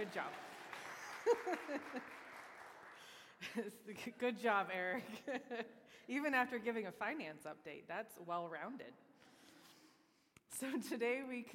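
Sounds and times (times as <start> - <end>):
speech: 0.0 - 0.6, 1.2 - 2.2, 3.4 - 9.0, 10.5 - 11.5
audience clapping: 0.0 - 3.4
laughter: 0.9 - 2.4.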